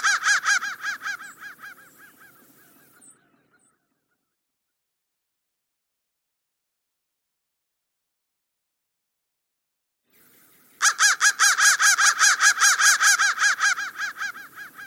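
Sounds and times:
crow cawing: 0.0 - 3.2, 10.8 - 14.8.

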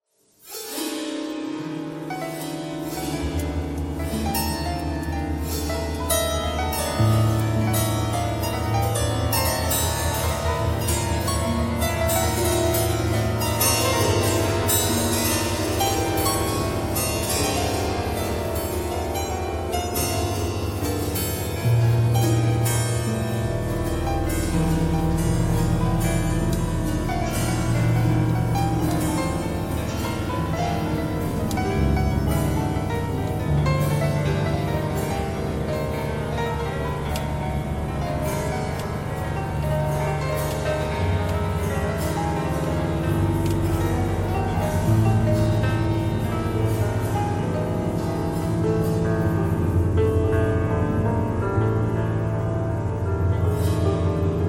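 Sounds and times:
piano: 0.0 - 54.4.

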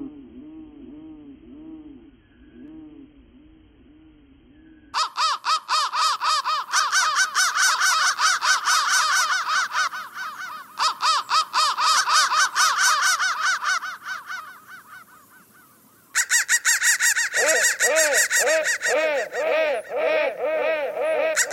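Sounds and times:
crow cawing: 4.9 - 21.5.

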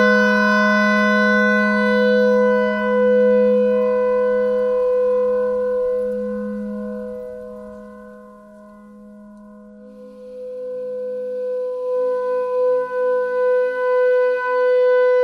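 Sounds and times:
clarinet thread noise: 0.0 - 11.9
clarinet notes: 0.0 - 15.1.

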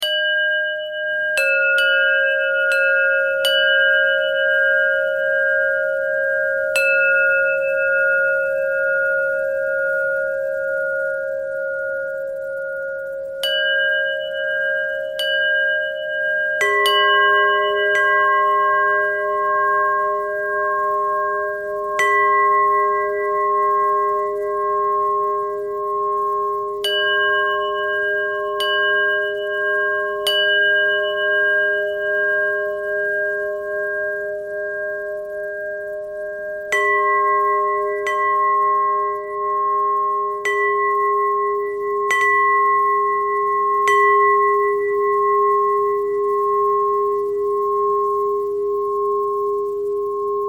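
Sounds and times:
bells ringing: 0.0 - 50.4.

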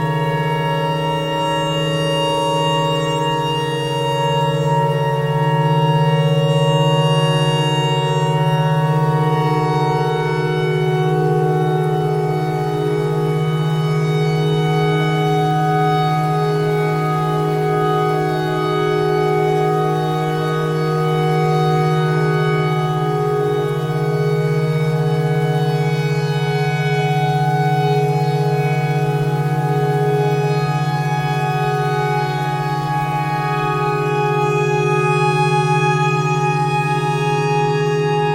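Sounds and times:
pentatonic clarinet notes: 0.0 - 38.3
tornado siren: 0.0 - 38.3.

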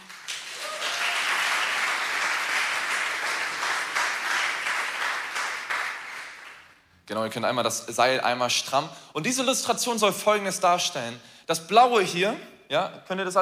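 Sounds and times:
audience applause: 0.0 - 6.7
speech: 7.1 - 13.3.

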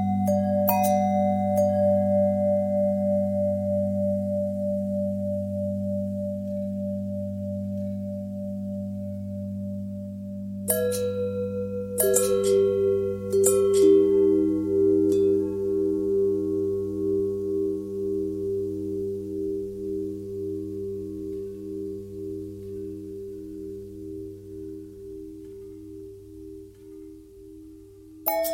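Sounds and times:
long pentatonic bell tones: 0.0 - 28.5.

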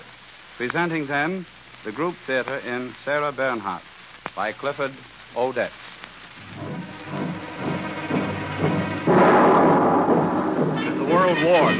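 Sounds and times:
speech: 0.6 - 6.6, 11.3 - 11.7
heavy artillery booms rolling through a city: 9.0 - 11.7.

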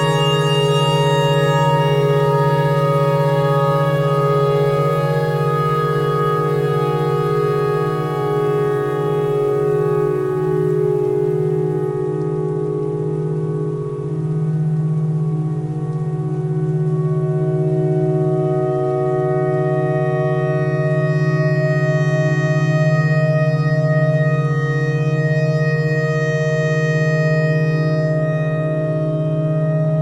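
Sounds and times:
clarinet notes: 0.0 - 12.7, 15.8 - 30.0
tornado siren: 0.0 - 30.0.

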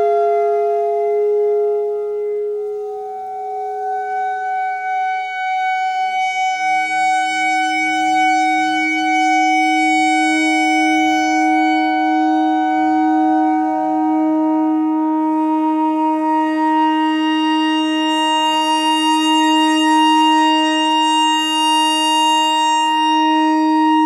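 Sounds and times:
clarinet notes in E pentatonic: 0.0 - 24.0.

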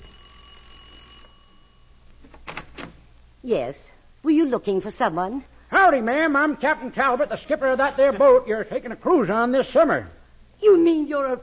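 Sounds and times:
doorbell ringing: 0.0 - 2.0
speech: 3.4 - 11.4.

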